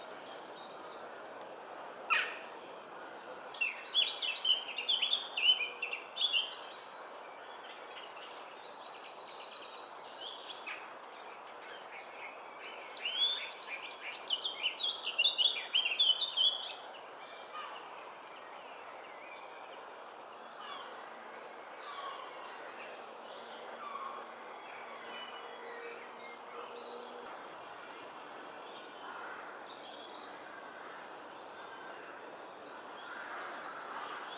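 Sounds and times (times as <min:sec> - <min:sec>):
nature sounds: 0:00.0 - 0:34.3
robins chirping and singing: 0:03.6 - 0:19.7, 0:20.3 - 0:21.0, 0:21.9 - 0:31.7.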